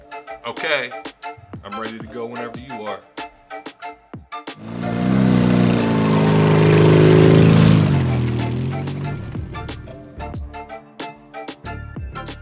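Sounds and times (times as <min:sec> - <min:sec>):
speech: 0:00.5 - 0:03.1
dirt bike engine roaring through traffic: 0:04.6 - 0:10.0.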